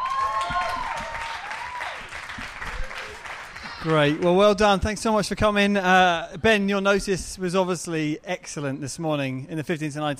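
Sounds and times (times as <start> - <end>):
audience applause welcoming a speaker to the stage: 0.0 - 4.8
speech: 3.8 - 10.1.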